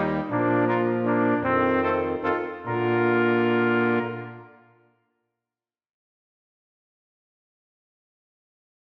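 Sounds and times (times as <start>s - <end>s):
brass quintet playing a minuet: 0.0s - 4.9s.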